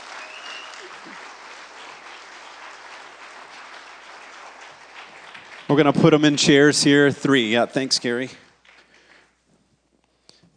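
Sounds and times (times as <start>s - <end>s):
audience applause: 0.0s - 7.0s
speech: 5.7s - 8.4s.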